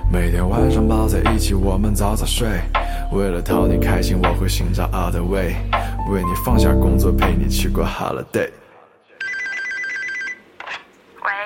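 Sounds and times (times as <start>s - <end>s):
speech: 0.1s - 8.6s
telephone ringing: 9.2s - 10.6s.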